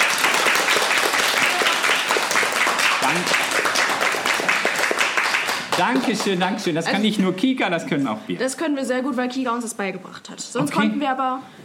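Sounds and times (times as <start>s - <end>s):
room full of people clapping on command: 0.0s - 7.4s
speech: 5.8s - 11.6s.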